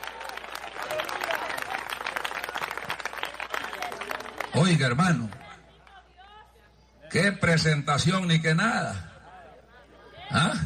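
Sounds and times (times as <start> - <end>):
crowd applauding loudly: 0.0 - 6.0
speech: 4.6 - 5.4, 7.1 - 9.1.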